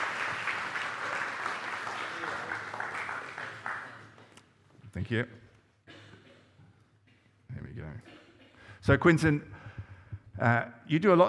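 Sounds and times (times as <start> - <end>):
audience applause: 0.0 - 4.4
speech: 5.0 - 5.4, 8.8 - 9.6, 10.4 - 11.2.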